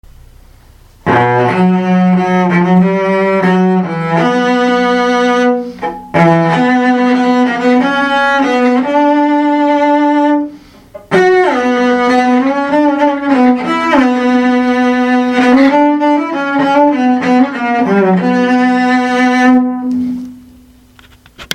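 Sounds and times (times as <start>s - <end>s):
fast theme on the cello: 1.0s - 20.3s.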